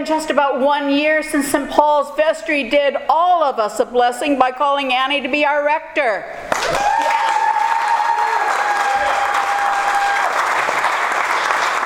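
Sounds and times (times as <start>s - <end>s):
speech: 0.0s - 7.0s
audience applause: 6.5s - 11.8s.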